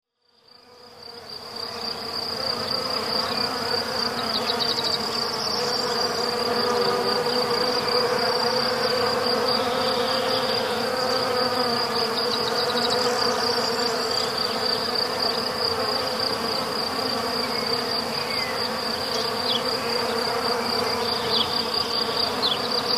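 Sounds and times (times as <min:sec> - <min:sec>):
bee buzzing as a steady low drone in a forest: 0:00.6 - 0:22.9.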